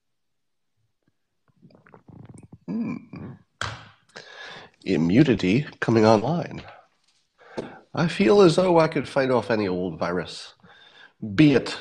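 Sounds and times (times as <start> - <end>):
person sipping and gulping a drink: 1.0 - 4.5
speech: 2.7 - 3.4, 4.9 - 6.8, 7.6 - 10.6, 11.2 - 11.7
breathy exhales: 4.1 - 4.8.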